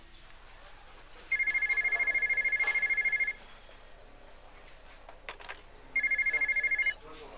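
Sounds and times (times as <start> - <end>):
telephone ringing with bright trilling: 1.3 - 3.4, 6.0 - 7.0.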